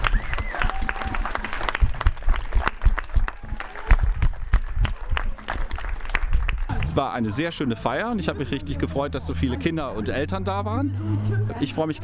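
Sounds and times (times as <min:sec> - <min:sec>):
faint voices and whoops: 0:00.0 - 0:01.8, 0:03.1 - 0:05.4
audience applause: 0:00.0 - 0:07.9
speech: 0:07.0 - 0:12.0.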